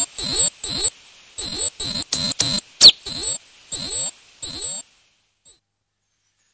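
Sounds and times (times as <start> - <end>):
great tit churring: 0.2 - 4.8.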